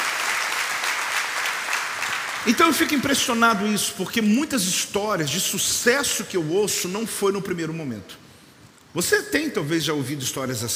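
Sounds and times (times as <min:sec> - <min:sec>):
audience applause: 0:00.0 - 0:03.0
speech: 0:02.4 - 0:08.2, 0:09.0 - 0:10.7.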